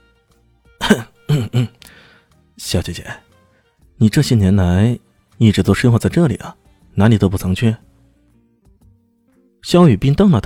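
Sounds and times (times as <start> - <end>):
person coughing lightly: 0.8 - 2.0
speech: 0.9 - 1.8, 2.7 - 3.3, 4.0 - 7.9, 9.6 - 10.4.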